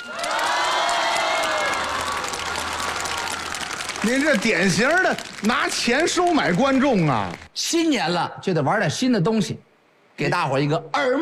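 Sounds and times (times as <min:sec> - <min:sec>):
large crowd applauding: 0:00.0 - 0:07.5
speech: 0:04.0 - 0:11.2.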